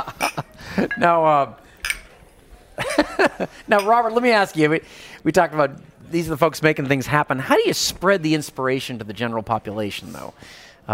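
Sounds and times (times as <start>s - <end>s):
glasses clinking in a toast: 0.0s - 2.3s, 3.7s - 4.3s
speech: 0.8s - 1.6s, 3.2s - 10.9s
laughter: 2.8s - 3.7s.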